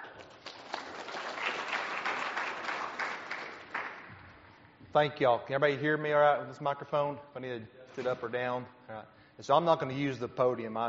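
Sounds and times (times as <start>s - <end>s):
crowd applause welcoming a speaker: 0.0s - 4.0s
speech: 5.0s - 10.8s.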